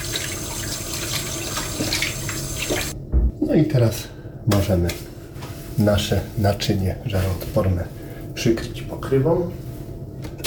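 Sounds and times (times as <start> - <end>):
tap water running while washing hands: 0.0 - 3.0
speech: 3.5 - 5.1, 5.8 - 9.6.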